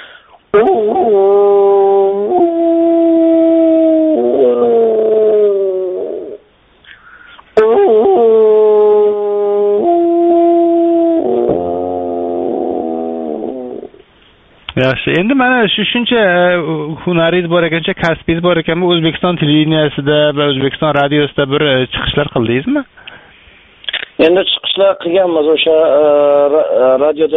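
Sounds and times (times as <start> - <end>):
human voice imitating a wolf howling: 0.5 - 6.4, 7.6 - 14.0
speech: 15.0 - 23.0, 24.2 - 27.3.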